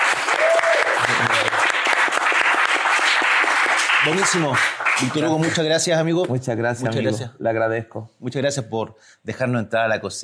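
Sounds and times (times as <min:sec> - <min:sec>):
audience applause: 0:00.0 - 0:05.9
speech: 0:04.0 - 0:10.2.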